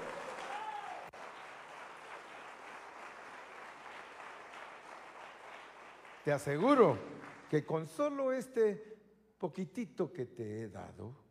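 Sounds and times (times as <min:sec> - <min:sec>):
audience applause: 0:00.0 - 0:07.7
speech: 0:06.2 - 0:11.2.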